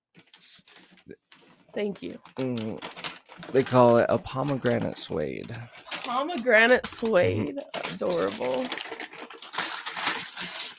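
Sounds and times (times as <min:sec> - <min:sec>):
gift wrapping paper ripping: 0:00.2 - 0:10.7
speech: 0:01.8 - 0:08.9.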